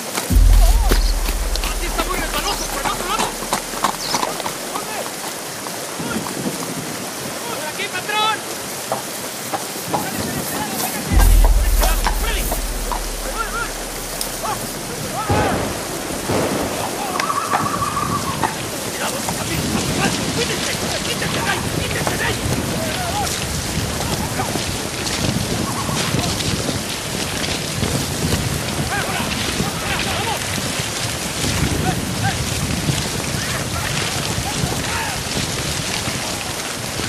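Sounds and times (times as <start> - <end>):
heavy rain pouring down: 0.0 - 37.0
deep rumbles: 0.3 - 4.9, 11.1 - 17.2.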